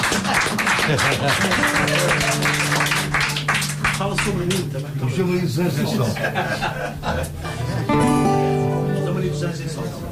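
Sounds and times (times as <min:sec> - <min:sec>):
laughter: 0:00.0 - 0:02.9, 0:05.7 - 0:08.1
round of applause: 0:00.0 - 0:04.9
speech: 0:00.9 - 0:02.6, 0:04.0 - 0:08.3, 0:09.4 - 0:10.0.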